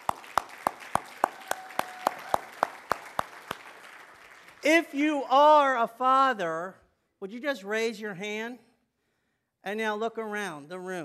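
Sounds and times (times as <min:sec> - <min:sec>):
audience applause: 0:00.0 - 0:04.6
speech: 0:04.6 - 0:08.6, 0:09.6 - 0:11.0.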